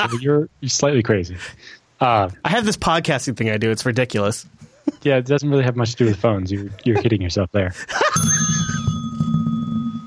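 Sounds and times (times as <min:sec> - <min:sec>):
speech: 0:00.0 - 0:08.8
struck physical bell ringing: 0:08.2 - 0:10.0.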